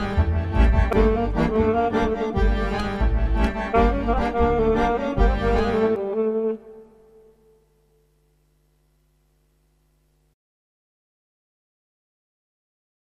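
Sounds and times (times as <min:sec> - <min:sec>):
swing music: 0:00.0 - 0:07.0.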